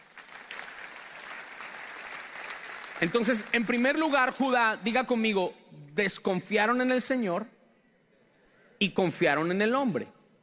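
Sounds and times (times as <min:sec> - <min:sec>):
church congregation clapping for the Lord during a sermon: 0:00.0 - 0:04.7
speech: 0:03.0 - 0:07.6, 0:08.8 - 0:10.2.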